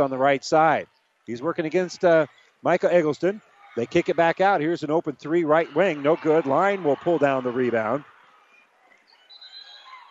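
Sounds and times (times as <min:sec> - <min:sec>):
speech: 0:00.0 - 0:08.1
basketball crowd noise: 0:00.0 - 0:10.1
referee's whistle at basketball game: 0:09.2 - 0:10.1.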